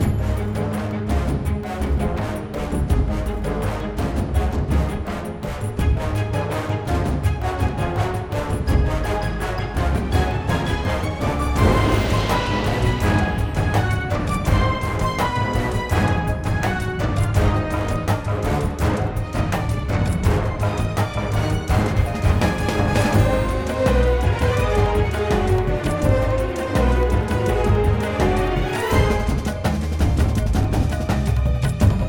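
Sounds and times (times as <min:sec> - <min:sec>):
battle music loop: 0:00.0 - 0:32.0.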